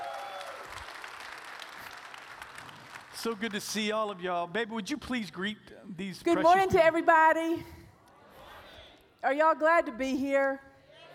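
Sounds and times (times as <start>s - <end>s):
audience applause: 0.0s - 3.9s
speech: 3.2s - 7.8s, 9.2s - 10.7s.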